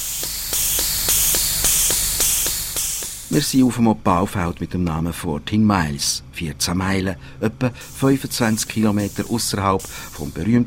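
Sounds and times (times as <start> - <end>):
grease gun pumping grease into front loader joints: 0.0 - 3.4, 7.8 - 10.4
speech: 3.3 - 10.6.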